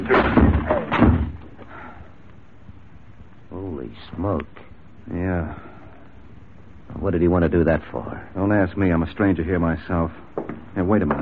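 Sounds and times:
door forced open with a shoulder: 0.0 - 1.6
speech: 7.2 - 11.2.

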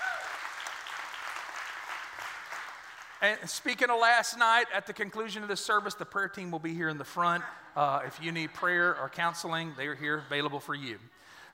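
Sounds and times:
audience clapping hands: 0.0 - 3.5
speech: 3.2 - 11.5.

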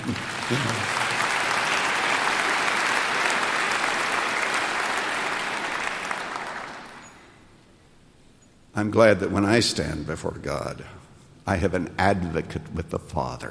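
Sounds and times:
audience clapping: 0.0 - 7.4
speech: 0.1 - 1.0, 8.8 - 13.4.

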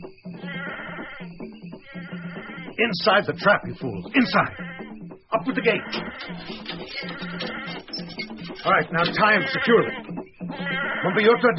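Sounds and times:
goat bleating brought up as trap bait in the jungle: 0.4 - 1.1, 4.2 - 4.8, 5.4 - 11.5
speech: 2.8 - 4.6, 5.4 - 10.2, 11.0 - 11.5.

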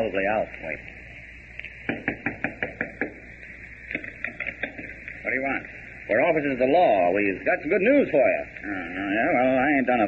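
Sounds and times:
speech: 0.0 - 1.0, 5.3 - 10.0
knocking on a door: 1.9 - 3.2.

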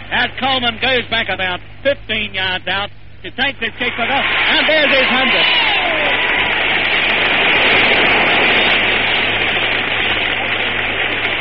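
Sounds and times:
speech: 0.2 - 6.0
large stadium crowd clapping: 3.8 - 11.3.

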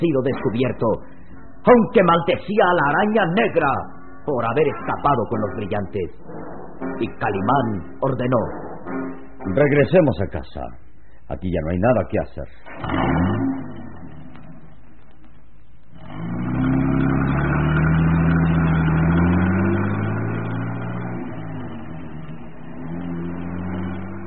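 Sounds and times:
speech: 0.0 - 13.6
car driving away: 3.4 - 9.6, 12.6 - 24.2.

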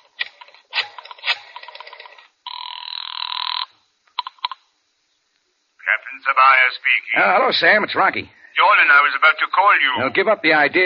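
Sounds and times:
telephone bell ringing: 2.5 - 3.7
speech: 6.2 - 10.8.

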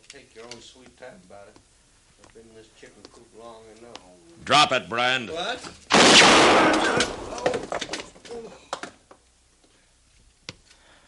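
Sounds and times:
speech: 0.1 - 8.8
gunshot: 5.9 - 7.7.

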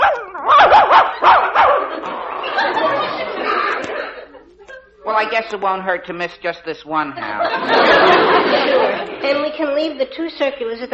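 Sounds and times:
dog at a gate: 0.0 - 1.9
laughter: 1.1 - 5.0, 7.2 - 10.8
speech: 5.2 - 10.9.

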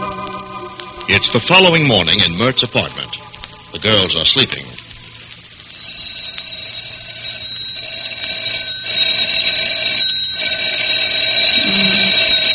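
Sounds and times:
speech: 1.1 - 4.7
telephone ringing: 5.8 - 12.5.

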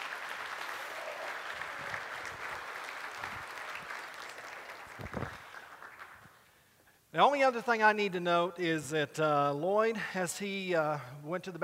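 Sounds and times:
church congregation applauding to welcome new members: 0.0 - 6.5
speech: 7.1 - 11.6.

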